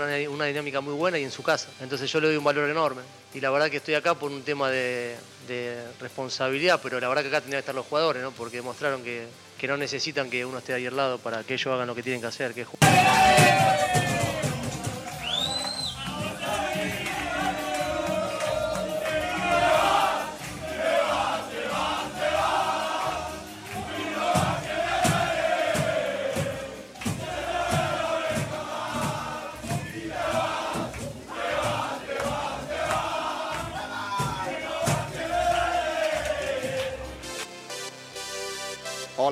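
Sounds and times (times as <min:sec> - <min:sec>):
speech: 0:00.0 - 0:14.0
football team celebrating in locker room: 0:12.8 - 0:39.2.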